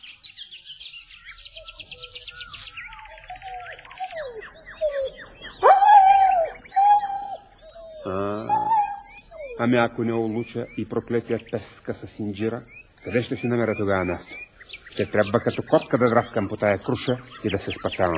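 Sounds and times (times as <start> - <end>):
birds chirping and trilling: 0.0 - 18.1
dog barking and howling: 3.1 - 10.0
speech: 9.6 - 18.1.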